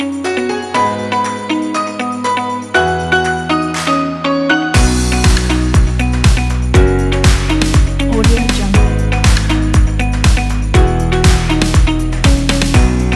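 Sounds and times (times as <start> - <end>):
upbeat corporate music kit: 0.0 - 13.1.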